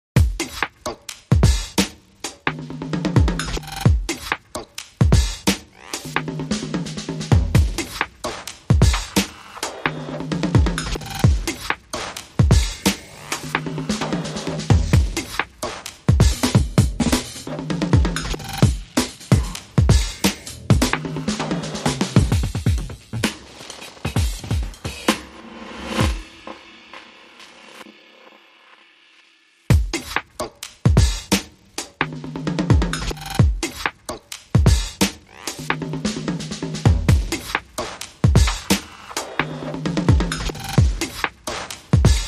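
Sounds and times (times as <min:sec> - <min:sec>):
drum beats: 0:00.2 - 0:28.4, 0:29.7 - 0:42.2.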